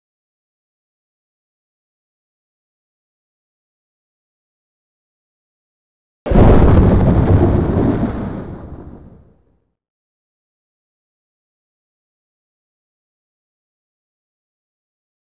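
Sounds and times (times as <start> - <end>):
thunder: 6.3 - 9.5.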